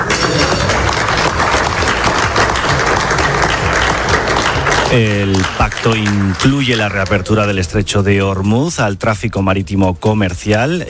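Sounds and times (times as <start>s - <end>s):
applause at a treaty signing ceremony: 0.0s - 7.7s
speech: 4.9s - 10.8s.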